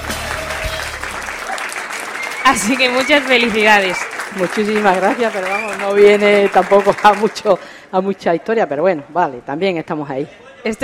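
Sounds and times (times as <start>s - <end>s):
small group applauding for a birthday: 0.0s - 7.8s
speech: 2.5s - 10.8s.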